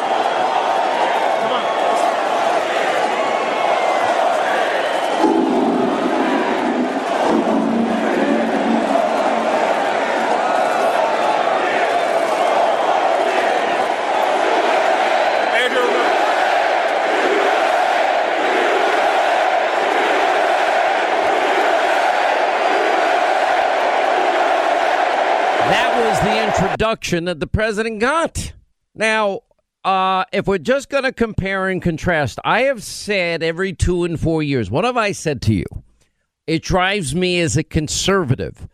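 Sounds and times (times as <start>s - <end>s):
stadium crowd applauding: 0.0s - 26.8s
speech: 26.9s - 35.9s, 36.5s - 38.7s.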